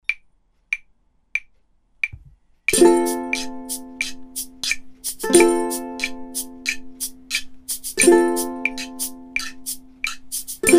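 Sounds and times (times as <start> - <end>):
ukulele playing without vocals: 2.7 - 10.7.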